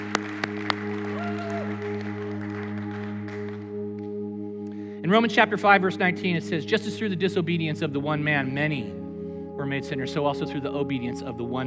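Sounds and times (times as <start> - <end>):
golf clap from audience: 0.0 - 4.2
speech: 5.0 - 9.0, 9.6 - 11.6.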